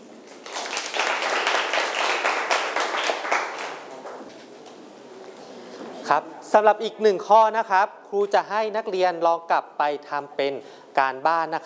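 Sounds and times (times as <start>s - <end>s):
students applauding: 0.3s - 4.2s
speech: 6.1s - 11.6s.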